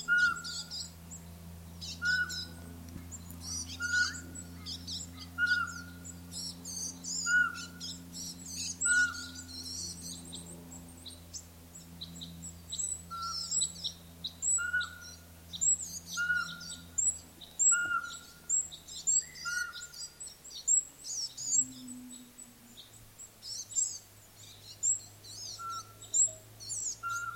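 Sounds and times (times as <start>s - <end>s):
pygmy owl calling: 0.0s - 0.9s, 1.8s - 2.7s, 3.4s - 6.1s, 6.7s - 10.0s, 12.7s - 23.0s, 23.7s - 27.3s.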